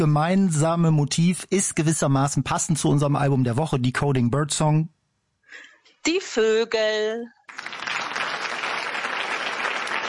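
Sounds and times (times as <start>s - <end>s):
speech: 0.0s - 7.7s
crowd clapping: 7.5s - 10.0s.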